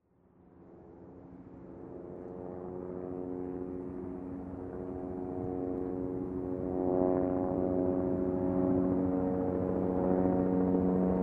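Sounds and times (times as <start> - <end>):
helicopter: 0.0 - 11.2.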